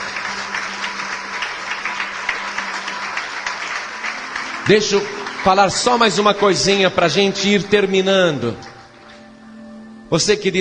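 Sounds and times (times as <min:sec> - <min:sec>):
audience applause: 0:00.0 - 0:07.9
speech: 0:04.7 - 0:08.7, 0:10.1 - 0:10.5.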